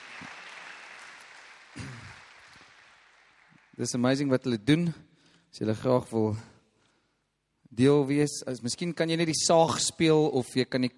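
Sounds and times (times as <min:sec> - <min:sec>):
faint audience applause for a church band: 0:00.0 - 0:03.8
speech: 0:03.8 - 0:06.5, 0:07.8 - 0:10.9.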